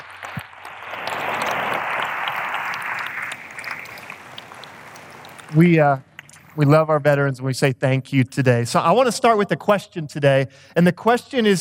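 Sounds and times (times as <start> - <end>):
audience applause: 0.0 - 5.7
speech: 5.5 - 11.6.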